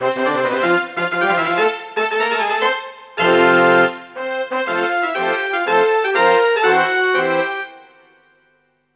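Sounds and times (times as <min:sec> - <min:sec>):
fanfare: 0:00.0 - 0:07.8.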